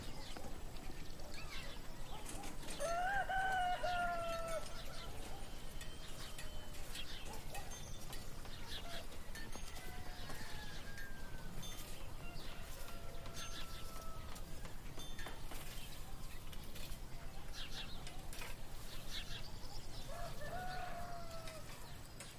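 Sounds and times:
other birds calling and singing: 0.0s - 22.3s
rooster crowing: 2.8s - 5.2s, 8.9s - 14.5s, 20.1s - 21.9s.

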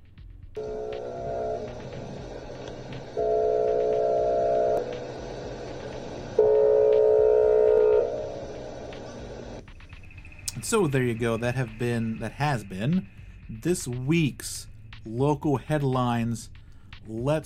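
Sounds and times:
eerie alarm going off: 0.6s - 14.1s
speech: 10.7s - 17.4s.

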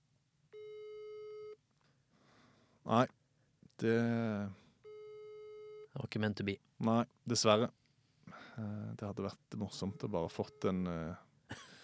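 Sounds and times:
hiss: 0.0s - 11.8s
telephone busy signal on outgoing call: 0.6s - 1.6s, 4.8s - 5.9s
speech: 2.9s - 3.2s, 3.8s - 4.6s, 6.0s - 7.8s, 8.6s - 11.6s.

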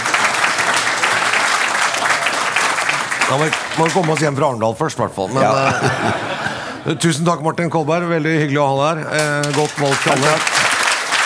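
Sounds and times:
audience applause: 0.0s - 4.5s, 9.2s - 11.2s
speech: 3.3s - 10.6s
laughter: 5.3s - 7.5s.

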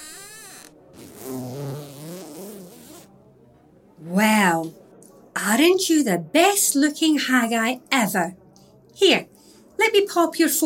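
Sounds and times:
zipper drawn up the back of a costume: 0.0s - 3.1s
speech: 5.6s - 8.4s, 9.0s - 10.6s.

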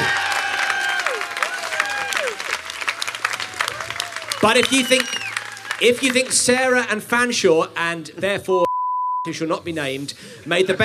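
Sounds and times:
audience applause: 0.0s - 6.6s
speech: 4.4s - 5.2s, 5.8s - 10.8s.

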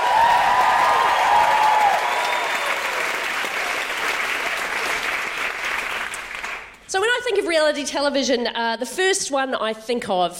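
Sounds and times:
audience applause: 0.0s - 6.8s
speech: 7.5s - 10.3s.

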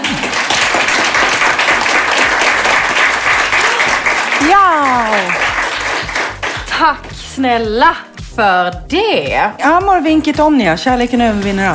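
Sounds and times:
audience applause: 0.0s - 6.7s
speech: 6.8s - 11.7s.

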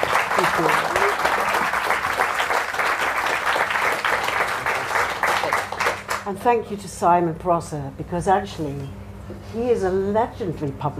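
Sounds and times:
audience applause: 0.0s - 6.3s
speech: 0.4s - 0.9s, 6.3s - 10.9s.

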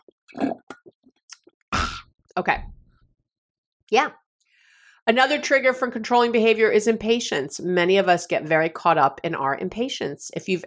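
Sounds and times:
person sipping and swallowing water: 0.0s - 2.1s
speech: 0.3s - 0.6s, 2.4s - 2.8s, 3.9s - 4.2s, 5.1s - 10.6s.

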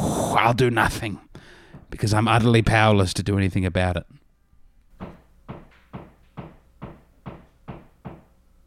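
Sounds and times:
speech: 0.4s - 1.3s, 1.9s - 4.2s
hammering: 5.0s - 8.4s.

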